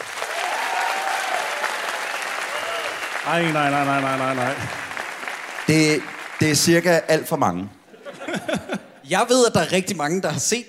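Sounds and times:
audience clapping: 0:00.0 - 0:07.6
speech: 0:03.3 - 0:04.8, 0:05.7 - 0:07.8, 0:09.1 - 0:10.6
laughter: 0:07.9 - 0:09.0.

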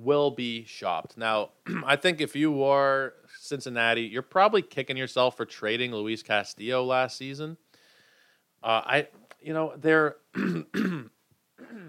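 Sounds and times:
speech: 0:00.0 - 0:07.6, 0:08.6 - 0:10.2
throat clearing: 0:01.6 - 0:02.0, 0:10.4 - 0:11.8.

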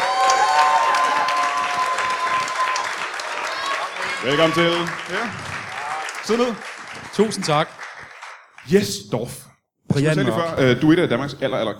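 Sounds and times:
audience applause and cheering at a live comedy show at Comedy Zoo: 0:00.0 - 0:08.8
speech: 0:04.2 - 0:05.7, 0:06.3 - 0:07.8, 0:08.7 - 0:11.7.

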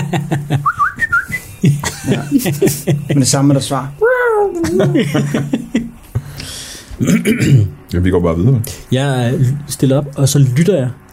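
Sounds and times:
laughter: 0:00.0 - 0:00.8, 0:01.6 - 0:03.6, 0:04.4 - 0:06.1
speech: 0:00.1 - 0:00.9, 0:02.1 - 0:05.6, 0:07.0 - 0:11.1
person whistling a bird-like call: 0:00.6 - 0:01.6.

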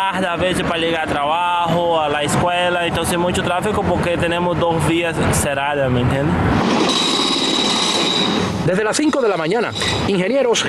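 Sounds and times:
speech: 0:00.0 - 0:07.2, 0:08.2 - 0:10.6
train passing at railroad crossing: 0:06.3 - 0:10.6
high-pitched train wheel squeal: 0:06.6 - 0:10.4.

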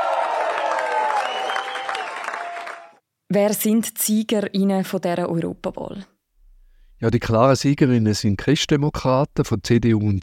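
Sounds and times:
party supporters applauding: 0:00.0 - 0:03.0
speech: 0:03.3 - 0:06.1, 0:07.0 - 0:10.2.

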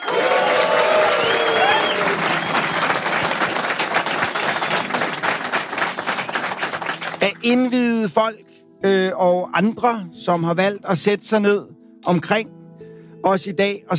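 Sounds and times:
cheering and whistles: 0:00.0 - 0:05.2
live theater audience applauding: 0:00.0 - 0:07.5
speech: 0:07.4 - 0:12.6, 0:13.2 - 0:13.9.

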